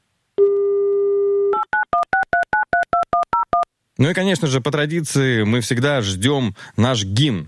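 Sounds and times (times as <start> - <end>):
dial tones: 0.4 - 3.7
speech: 4.0 - 7.4.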